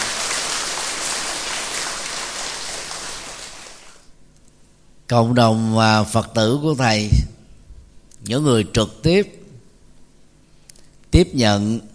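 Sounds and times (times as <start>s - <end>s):
loud applause from audience: 0.0s - 4.1s
speech: 5.1s - 7.3s, 8.2s - 9.4s, 11.2s - 11.9s.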